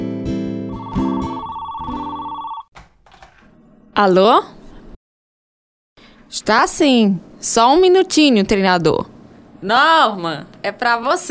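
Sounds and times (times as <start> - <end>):
telephone ringing with a metallic bell-like trill: 0.7 - 2.7
speech: 4.0 - 4.6, 6.3 - 11.2.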